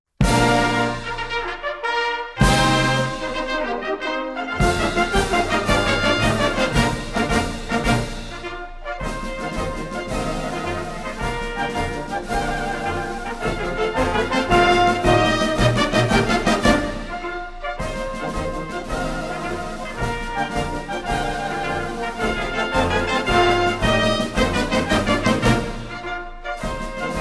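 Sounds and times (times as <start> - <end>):
march music: 0.2 - 27.1.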